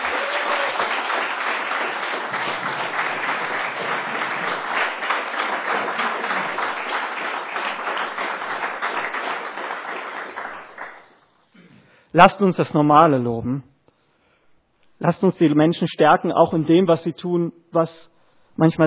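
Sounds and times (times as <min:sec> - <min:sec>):
crowd applause: 0:00.0 - 0:11.2
speech: 0:12.2 - 0:13.7, 0:15.0 - 0:18.8.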